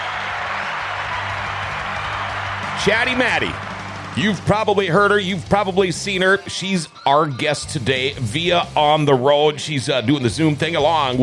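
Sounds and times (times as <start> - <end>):
round of applause: 0.0 - 5.2
speech: 2.8 - 11.2.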